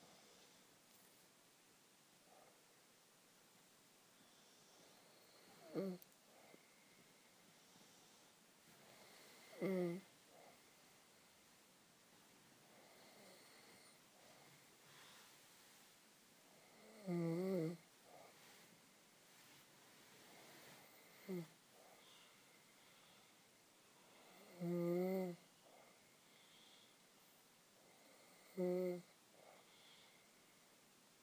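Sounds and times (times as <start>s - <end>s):
person snoring: 4.4s - 6.7s, 8.9s - 10.6s, 16.5s - 18.4s, 20.8s - 22.2s, 24.1s - 26.0s, 27.8s - 30.1s.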